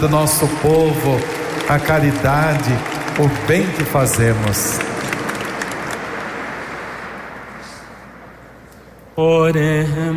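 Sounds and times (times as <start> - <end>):
speech: 0.0 - 4.9, 9.2 - 10.1
audience applause: 0.0 - 7.8.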